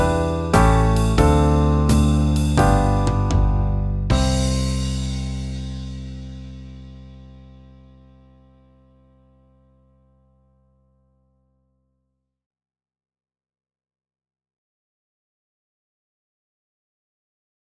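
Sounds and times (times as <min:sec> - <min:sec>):
backing track in C major at 92 bpm: 0:00.0 - 0:05.5.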